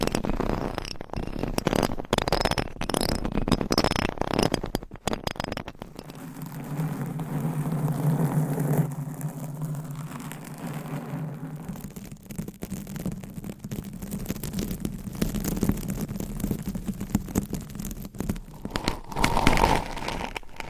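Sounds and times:
nails scratching over microphones and their covers: 0.0 - 12.2, 18.3 - 20.6
crinkles and scrapes: 0.0 - 20.6
low rubbing hum: 5.9 - 12.0.

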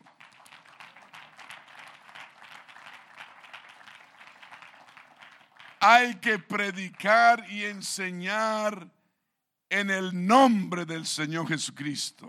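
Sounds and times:
crowd applauding: 0.0 - 7.2
speech: 5.8 - 9.0, 9.7 - 12.2.

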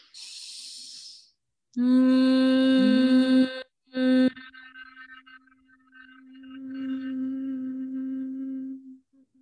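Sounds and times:
breathy hiss: 0.0 - 1.4
person humming in sound-healing practice: 1.8 - 4.6, 6.5 - 9.4.

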